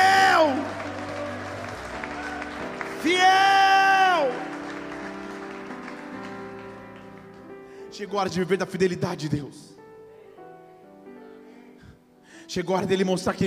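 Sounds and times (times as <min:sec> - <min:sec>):
audience applause: 0:00.0 - 0:07.8
speech: 0:08.0 - 0:09.8, 0:12.5 - 0:13.4.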